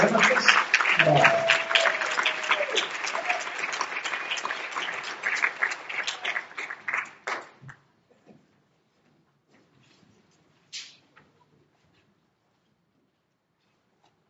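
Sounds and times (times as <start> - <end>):
speech: 0.0 - 0.3
audience clapping in welcome: 0.0 - 7.8.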